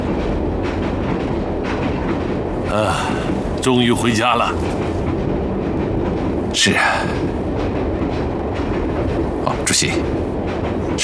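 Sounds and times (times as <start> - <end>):
passenger train running on rails near Manzhouli: 0.0 - 11.0
speech: 2.8 - 5.1, 6.6 - 7.7, 9.5 - 10.3.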